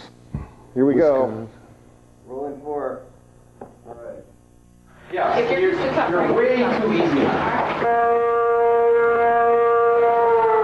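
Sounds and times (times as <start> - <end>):
speech: 0.8 - 1.6, 2.3 - 3.1, 5.1 - 8.4
noon whistle air raid siren: 7.8 - 10.6.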